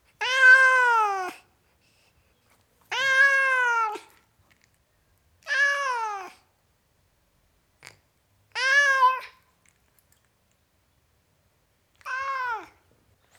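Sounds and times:
tom cat meowing: 0.2s - 1.4s, 2.9s - 4.1s, 5.4s - 6.4s, 8.6s - 9.4s, 12.0s - 12.8s.

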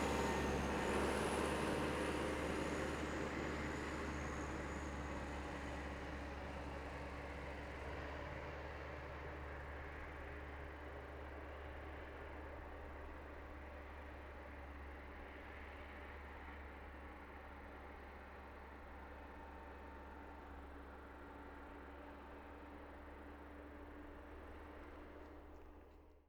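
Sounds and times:
Massey-Ferguson 3060E tractor driving away: 0.0s - 25.9s.

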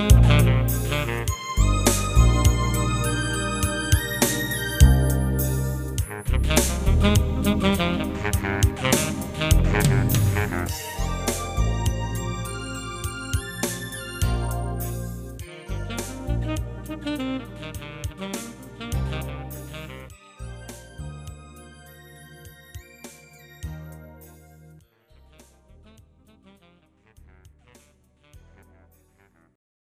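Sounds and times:
ballad: 0.0s - 22.8s.

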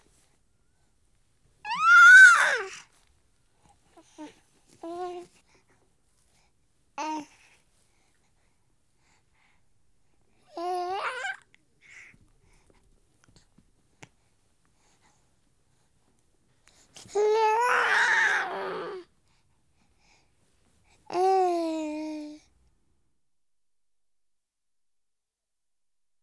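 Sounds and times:
week-old baby boy making happy sounds: 1.7s - 2.8s, 10.5s - 11.4s, 17.1s - 19.0s, 21.1s - 22.4s.

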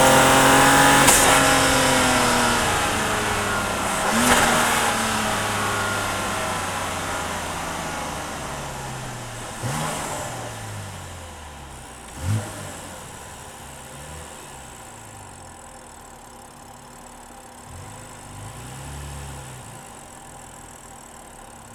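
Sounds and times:
car gearshifts while driving: 0.0s - 6.8s
car engine recorded onboard: 0.0s - 21.7s.

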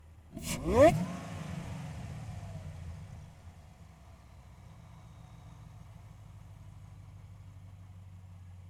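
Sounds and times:
2014 Camaro ZL1 engine throttle blips in neutral: 0.3s - 3.9s
2014 Camaro ZL1 engine intake noise: 0.3s - 6.4s
2014 Camaro ZL1 engine starting: 0.3s - 8.5s.

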